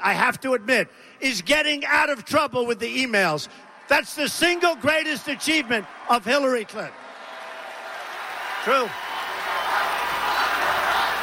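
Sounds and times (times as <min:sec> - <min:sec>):
speech: 0:00.0 - 0:07.1, 0:08.6 - 0:09.0
rally crowd chanting: 0:08.2 - 0:11.2.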